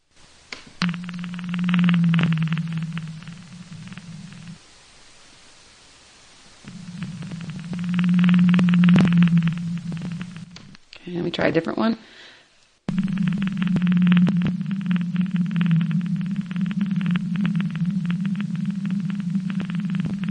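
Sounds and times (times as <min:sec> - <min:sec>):
blue whale vocalization: 0:00.8 - 0:04.6, 0:06.6 - 0:10.7, 0:12.9 - 0:20.3
speech: 0:11.4 - 0:12.2.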